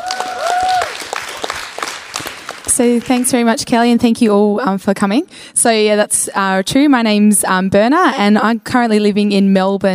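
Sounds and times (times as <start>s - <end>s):
audience applause for a speaker at a church vocation talk: 0.0s - 3.3s
speech: 2.8s - 9.9s.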